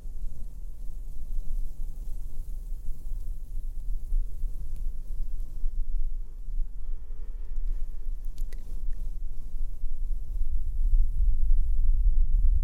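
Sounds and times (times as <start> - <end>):
slow microphone brushing and blowing: 0.2 - 12.6.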